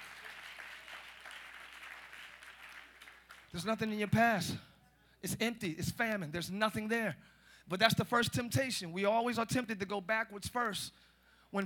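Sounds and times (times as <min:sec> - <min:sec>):
audience clapping: 0:00.0 - 0:04.3
speech: 0:03.5 - 0:11.6.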